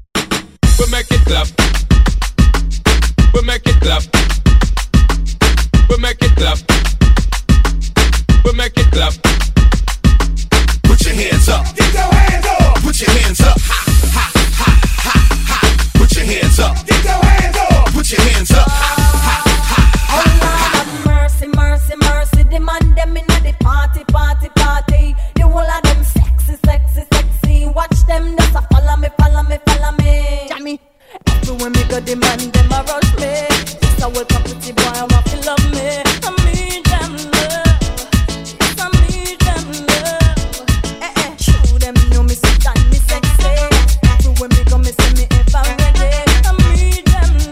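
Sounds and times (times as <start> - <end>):
reggae music: 0.2 - 47.4.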